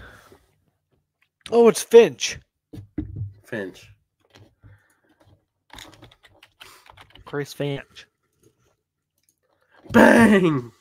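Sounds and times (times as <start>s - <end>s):
speech: 1.5s - 2.5s, 3.5s - 4.0s, 7.3s - 8.1s, 9.9s - 10.7s
typing on a computer keyboard: 5.7s - 7.5s.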